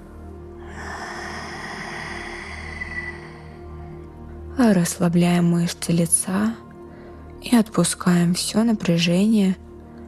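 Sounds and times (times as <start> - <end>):
soft sustained tonal backdrop: 0.0 - 9.2
slow exhale during a relaxation exercise: 0.6 - 4.0
speech: 4.6 - 6.6, 7.5 - 9.6.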